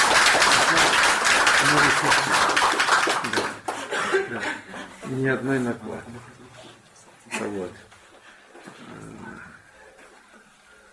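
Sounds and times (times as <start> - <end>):
audience applause at a lecture gathering: 0.0 - 4.0
speech: 5.2 - 6.3.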